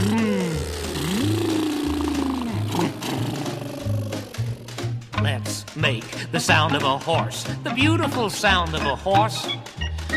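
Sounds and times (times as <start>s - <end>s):
voice imitating a truck engine: 0.0s - 4.9s
pulsing low bass line: 0.0s - 5.3s
speech: 5.9s - 9.8s.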